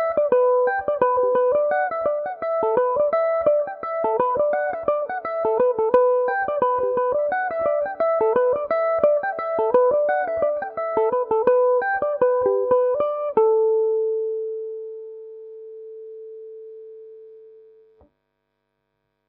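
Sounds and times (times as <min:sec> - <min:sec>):
Irish mandolin in A mixolydian: 0:00.0 - 0:14.2.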